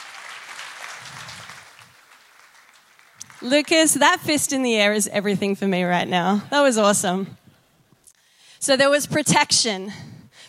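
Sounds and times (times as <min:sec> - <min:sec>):
applause: 0:00.0 - 0:04.3
speech: 0:03.4 - 0:07.4, 0:08.7 - 0:10.1.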